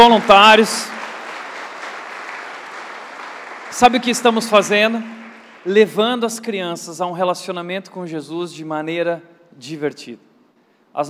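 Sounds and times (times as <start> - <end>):
speech: 0.0 - 1.0, 3.8 - 10.3
audience applause: 0.0 - 6.0.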